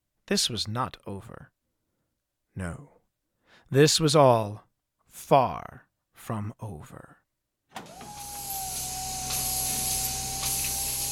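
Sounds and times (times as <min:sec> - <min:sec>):
speech: 0:00.3 - 0:01.6, 0:02.6 - 0:03.0, 0:03.6 - 0:07.2
pistons of a motor chair pumping: 0:08.0 - 0:11.1
steam-powered motor chair hissing: 0:08.0 - 0:11.1.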